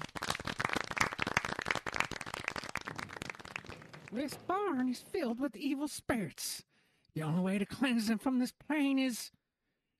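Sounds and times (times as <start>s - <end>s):
people clapping: 0.0s - 4.9s
speech: 4.1s - 9.4s.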